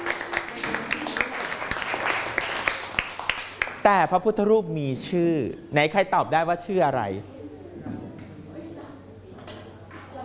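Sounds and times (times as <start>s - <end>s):
classroom students clapping: 0.0s - 3.8s
speech: 3.8s - 7.3s.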